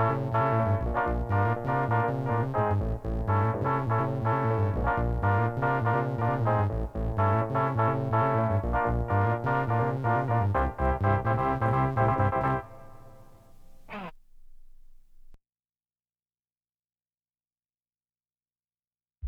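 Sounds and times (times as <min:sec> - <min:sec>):
instrumental music: 0:00.0 - 0:15.3.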